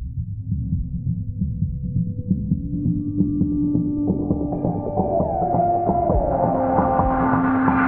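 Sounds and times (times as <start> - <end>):
oscillator tones in octaves: 0.2 - 7.8.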